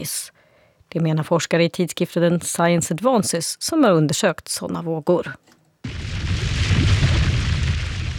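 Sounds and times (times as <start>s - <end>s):
speech: 0.0s - 6.0s
Hunga volcano eruption off Tonga: 5.8s - 8.1s.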